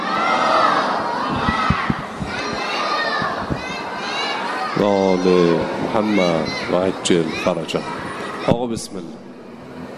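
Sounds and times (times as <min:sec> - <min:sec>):
crowd in a mosque hall reciting salawat together: 0:00.0 - 0:04.8
shouts: 0:00.0 - 0:06.7
speech: 0:04.8 - 0:09.2.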